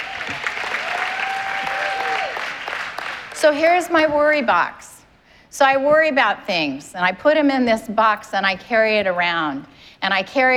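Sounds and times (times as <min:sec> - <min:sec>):
church congregation applause during a sermon: 0:00.0 - 0:03.6
speech: 0:03.4 - 0:04.9, 0:05.5 - 0:10.5.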